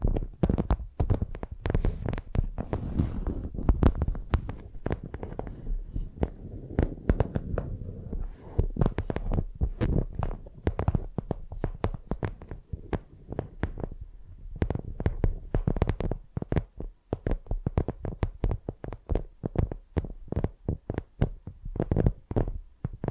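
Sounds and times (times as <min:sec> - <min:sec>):
dull low thumps: 0:00.0 - 0:15.8
microphone dragged and tapped like a pencil: 0:00.0 - 0:23.1.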